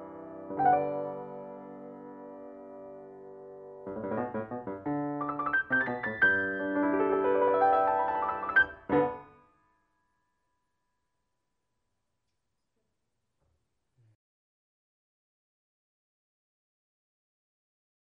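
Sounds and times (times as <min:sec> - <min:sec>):
solo piano: 0:00.0 - 0:09.6.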